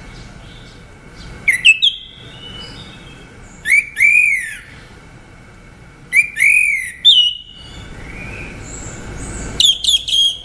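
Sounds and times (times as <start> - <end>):
orange-headed thrush song: 1.4 - 4.7, 6.1 - 10.4.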